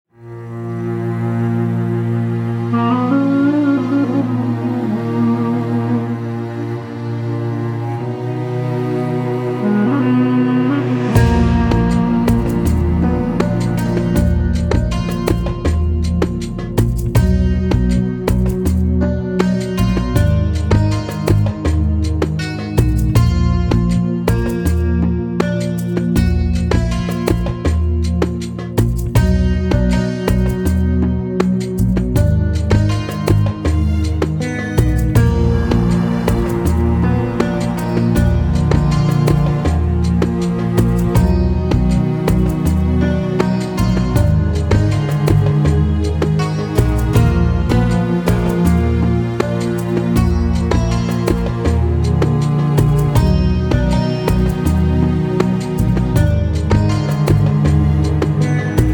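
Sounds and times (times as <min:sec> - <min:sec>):
Egyptian desert music: 0:00.1 - 0:58.9.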